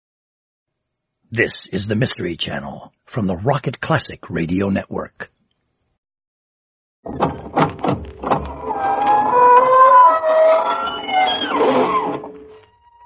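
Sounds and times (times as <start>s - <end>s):
speech: 1.3s - 5.4s, 7.0s - 7.4s
knocking: 7.1s - 8.6s
squeaking door opening: 7.1s - 13.0s.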